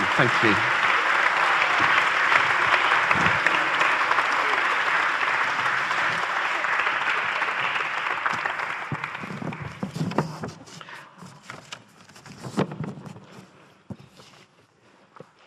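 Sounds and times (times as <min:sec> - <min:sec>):
audience applause: 0:00.0 - 0:10.5.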